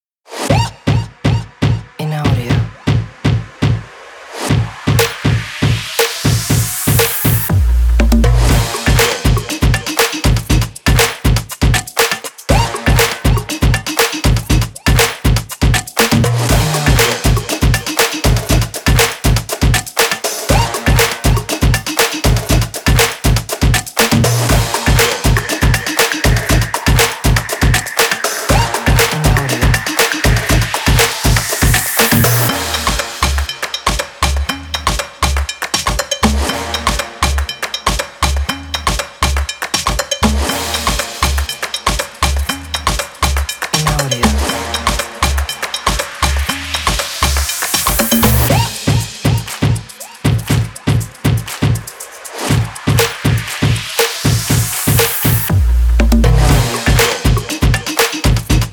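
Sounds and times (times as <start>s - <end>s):
percussion drums: 0.3s - 58.7s.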